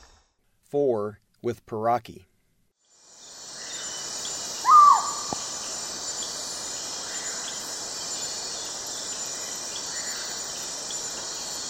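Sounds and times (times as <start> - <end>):
spectacled owl giving low knocking hoots in the eastern lowlands of South America: 4.6 - 5.6.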